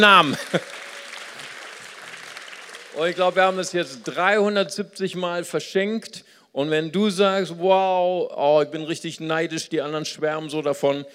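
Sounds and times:
speech: 0:00.0 - 0:00.8, 0:03.0 - 0:11.1
laughter: 0:00.0 - 0:01.7
audience clapping: 0:00.0 - 0:04.6.

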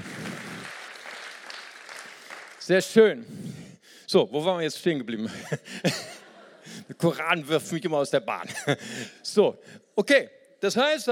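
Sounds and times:
audience applause: 0:00.0 - 0:02.7
speech: 0:02.7 - 0:03.4, 0:04.1 - 0:06.1, 0:06.9 - 0:11.0
laughter: 0:05.2 - 0:07.1.

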